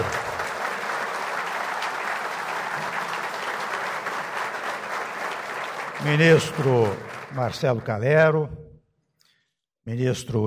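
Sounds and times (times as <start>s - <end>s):
applause: 0.0s - 8.4s
speech: 6.0s - 8.6s, 9.8s - 10.4s.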